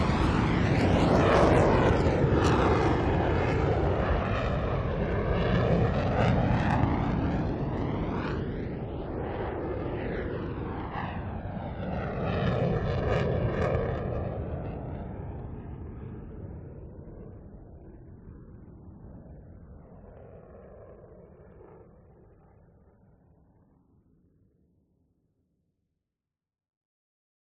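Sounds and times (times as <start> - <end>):
F-16 jet fighters passing from right to left: 0.0 - 16.8.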